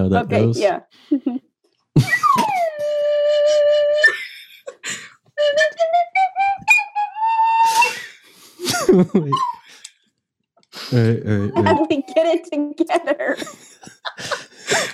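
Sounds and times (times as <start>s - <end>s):
person singing: 0.0s - 0.7s, 2.0s - 4.0s, 10.8s - 12.5s
speech: 0.0s - 2.5s, 8.9s - 9.5s, 10.9s - 14.3s
laughter: 2.0s - 3.0s, 4.0s - 5.0s, 7.7s - 9.9s, 10.8s - 14.9s
slide whistle: 2.1s - 4.3s, 5.4s - 8.2s.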